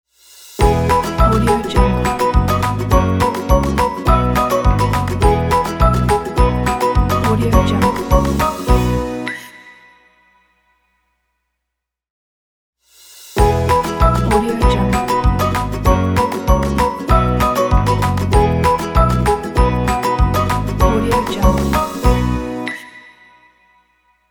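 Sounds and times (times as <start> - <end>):
upbeat happy kids logo music: 0.6 - 9.4, 13.4 - 23.0.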